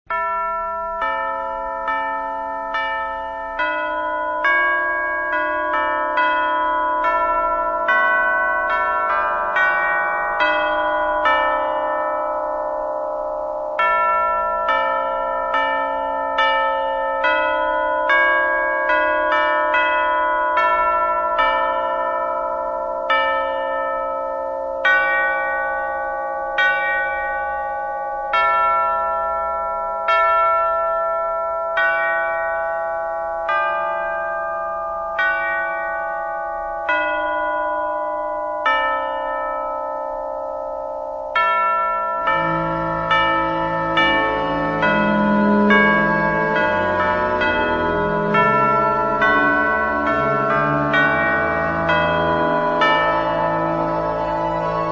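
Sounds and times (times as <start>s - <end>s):
chimes: 0.1s - 54.9s
cathedral organ: 42.3s - 54.9s.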